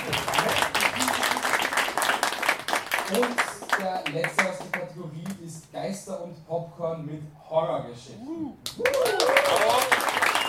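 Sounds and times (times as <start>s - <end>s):
audience applause: 0.0s - 4.6s, 8.8s - 10.4s
speech: 3.1s - 10.0s.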